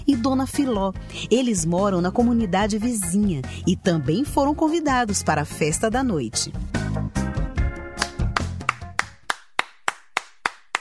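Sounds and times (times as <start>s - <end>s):
speech: 0.1s - 6.8s
visitors clapping at the door of a house: 7.9s - 10.7s.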